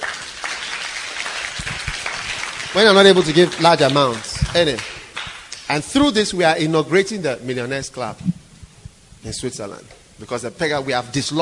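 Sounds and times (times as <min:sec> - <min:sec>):
audience clapping: 0:00.0 - 0:05.8
speech: 0:02.8 - 0:04.9, 0:05.7 - 0:08.4, 0:09.2 - 0:11.4.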